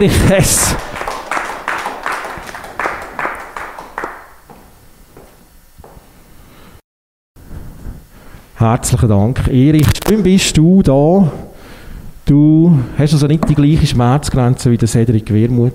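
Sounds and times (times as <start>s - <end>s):
speech: 0.0s - 0.9s, 8.6s - 11.5s, 12.3s - 15.7s
audience applause: 0.4s - 4.4s.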